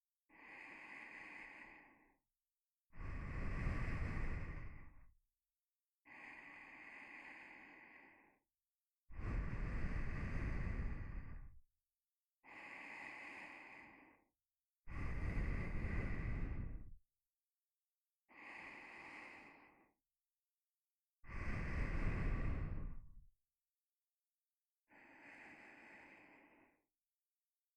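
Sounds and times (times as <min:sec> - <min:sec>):
nose breathing while lying beside: 0:00.3 - 0:02.1, 0:03.0 - 0:05.0, 0:06.1 - 0:08.4, 0:09.2 - 0:11.5, 0:12.5 - 0:14.2, 0:14.9 - 0:16.9, 0:18.3 - 0:19.9, 0:21.3 - 0:23.2, 0:24.9 - 0:26.8.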